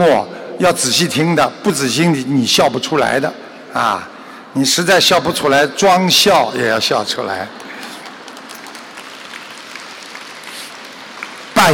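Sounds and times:
speech: 0.0 - 7.6
crowd applauding: 7.5 - 11.7.

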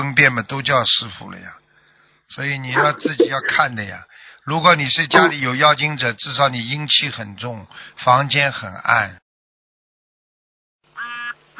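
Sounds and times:
speech: 0.0 - 1.6, 2.3 - 9.2
harsh nasal duck quack: 5.2 - 5.4, 11.0 - 11.5.

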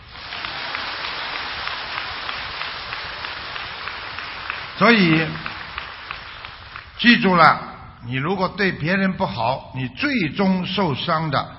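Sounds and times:
audience applause: 0.0 - 7.1
speech: 4.8 - 5.5, 7.0 - 11.5.

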